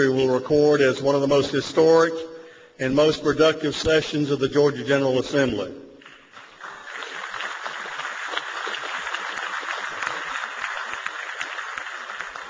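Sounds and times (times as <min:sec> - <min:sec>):
speech: 0:00.0 - 0:05.8
crowd applause in a legislative chamber: 0:06.0 - 0:12.4.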